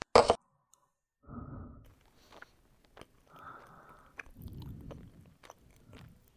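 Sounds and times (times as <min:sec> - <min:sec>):
chewing tomato and egg stir-fry: 0:01.8 - 0:06.3.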